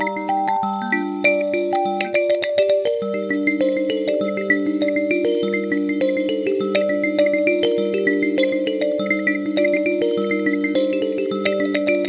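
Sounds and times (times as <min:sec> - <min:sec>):
kalimba solo in G minor: 0:00.0 - 0:12.0.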